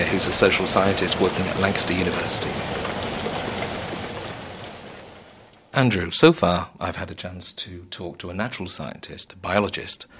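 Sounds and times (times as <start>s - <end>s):
heavy rain pouring down at Lancaster train station: 0.0s - 6.0s
speech: 0.1s - 2.9s, 5.8s - 10.1s.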